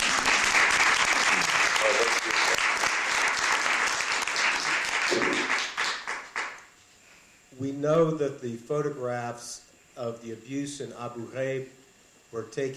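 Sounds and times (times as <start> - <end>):
audience applause: 0.0 - 6.6
speech: 7.6 - 12.7.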